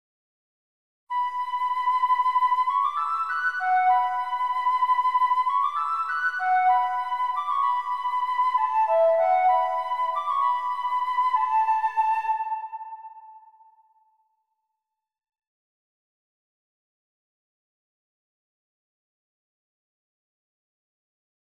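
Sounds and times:
flute: 0:01.1 - 0:14.2.

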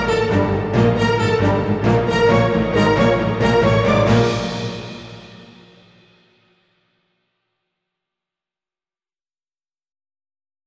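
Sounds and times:
tense music: 0:00.0 - 0:06.5.

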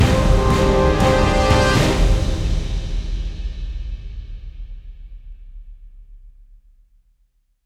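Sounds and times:
short action music ending: 0:00.0 - 0:03.4.

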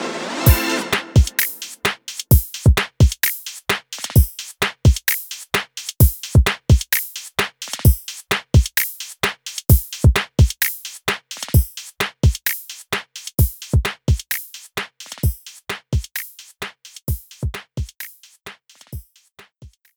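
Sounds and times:
music beat: 0:00.0 - 0:19.9.

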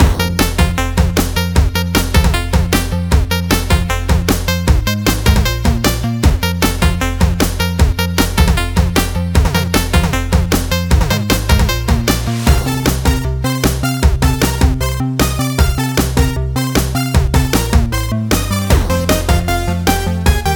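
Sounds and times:
chiptune stage music: 0:00.0 - 0:20.5.

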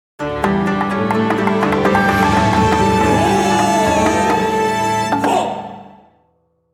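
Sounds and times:
national anthem music: 0:00.4 - 0:05.8.

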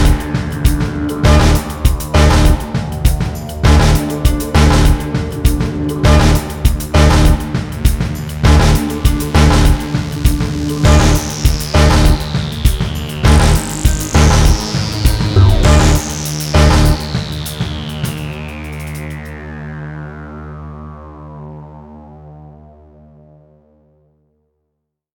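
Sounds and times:
music loop: 0:00.0 - 0:19.2.

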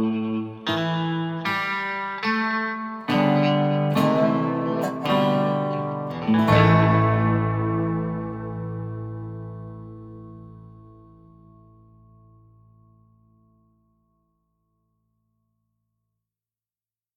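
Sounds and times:
tense ambient guitars: 0:00.0 - 0:12.6.

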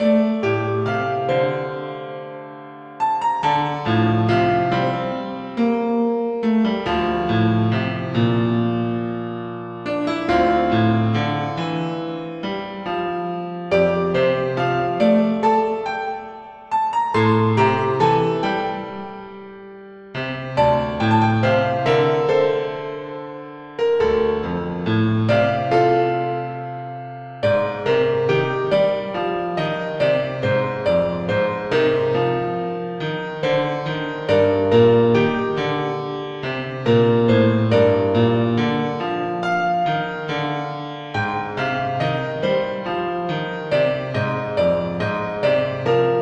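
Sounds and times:
comic key background piano music: 0:00.0 - 0:46.2.

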